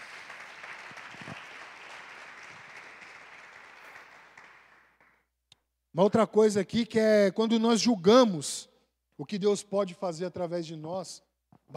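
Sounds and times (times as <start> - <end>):
audience applauding: 0.0 - 5.2
speech: 6.0 - 11.7.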